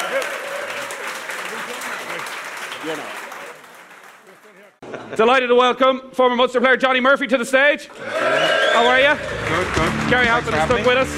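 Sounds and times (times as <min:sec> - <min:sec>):
audience applause at a rugby club live event: 0:00.0 - 0:04.8, 0:08.0 - 0:11.1
speech: 0:02.8 - 0:03.2, 0:05.1 - 0:11.1.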